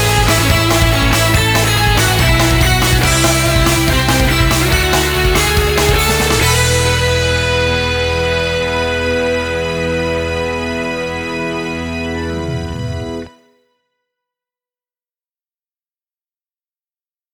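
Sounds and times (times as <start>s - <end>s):
short ending theme karaoke: 0.0s - 13.3s.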